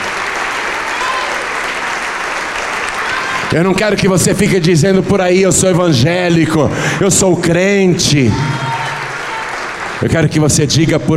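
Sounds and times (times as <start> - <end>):
audience applauding: 0.0 - 4.2, 7.1 - 11.1
speech: 3.5 - 8.7, 10.0 - 11.1.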